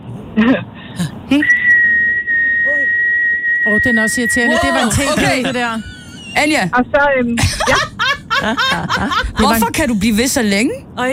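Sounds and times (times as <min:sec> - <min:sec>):
speech: 0:00.4 - 0:01.6, 0:03.8 - 0:11.1
breaths: 0:00.8 - 0:01.1
person whistling one steady high note: 0:01.4 - 0:04.2
laughter: 0:04.5 - 0:06.6, 0:07.4 - 0:09.7.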